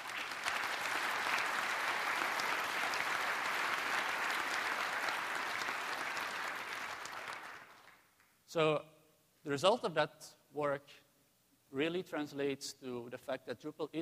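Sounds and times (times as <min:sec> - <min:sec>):
audience applause: 0:00.0 - 0:08.1
speech: 0:08.5 - 0:11.0, 0:11.7 - 0:14.0.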